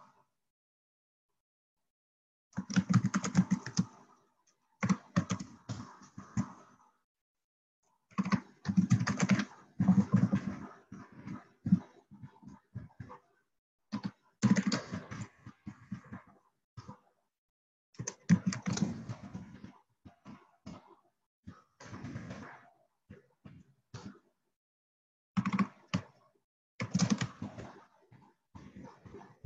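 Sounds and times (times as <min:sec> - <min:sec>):
computer keyboard typing a message into a chat box: 0:02.5 - 0:03.9, 0:04.8 - 0:05.5, 0:08.1 - 0:10.3, 0:13.9 - 0:14.9, 0:18.0 - 0:18.9, 0:25.4 - 0:25.7, 0:26.8 - 0:27.3.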